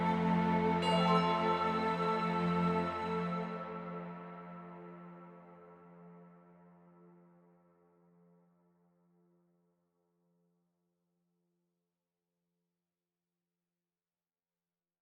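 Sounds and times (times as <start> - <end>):
orchestral arrangement: 0.0 - 5.4.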